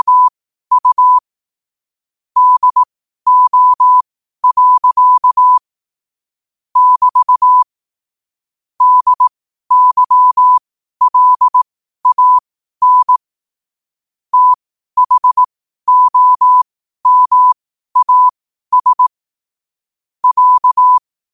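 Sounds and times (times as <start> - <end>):
morse code at 5 wpm: 0.0 - 1.2, 2.4 - 5.6, 6.8 - 7.7, 8.8 - 13.2, 14.3 - 19.1, 20.2 - 21.0.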